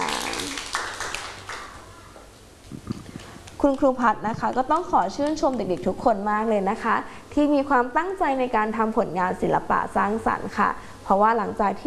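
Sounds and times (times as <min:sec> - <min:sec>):
children clapping hands: 0:00.0 - 0:01.9
speech: 0:03.6 - 0:11.8.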